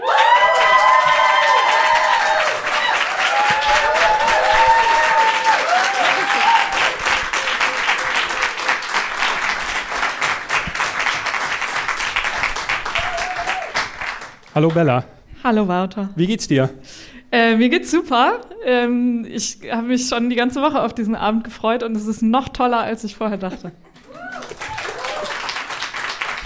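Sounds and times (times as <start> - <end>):
audience applause: 0.0 - 15.0, 24.0 - 26.4
speech: 14.6 - 23.9.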